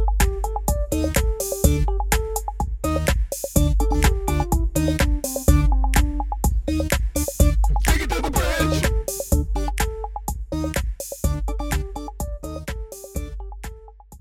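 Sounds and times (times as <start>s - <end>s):
instrumental music: 0.0s - 14.1s
background vocals: 7.9s - 8.9s.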